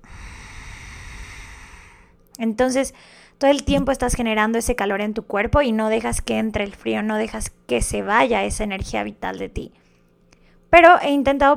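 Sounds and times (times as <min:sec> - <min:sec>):
Ujjayi breathing through closed mouth: 0:00.0 - 0:02.2
speech: 0:02.4 - 0:09.8, 0:10.7 - 0:11.5.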